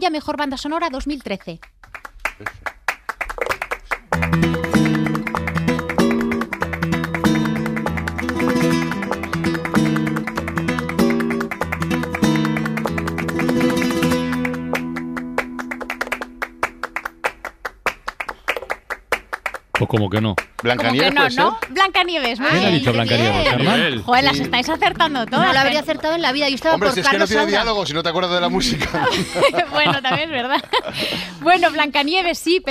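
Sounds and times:
speech: 0.0 - 2.8, 4.3 - 4.7, 19.9 - 32.6
flamenco palmas hand clapping: 1.4 - 27.2
flamenco zapateado footwork: 1.7 - 27.3
Spanish guitar: 4.0 - 17.6, 20.7 - 32.2
laughter: 22.5 - 27.6, 28.5 - 31.9.

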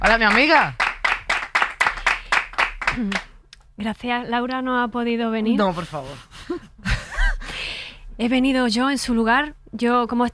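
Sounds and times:
speech: 0.0 - 0.8, 3.0 - 6.6, 8.2 - 10.3
audience clapping in a regular rhythmic beat: 0.0 - 3.4.

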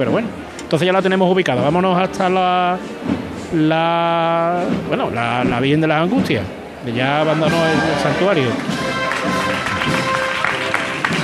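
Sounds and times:
speech: 0.0 - 9.4
crowd applause during a religious procession: 6.9 - 11.2.

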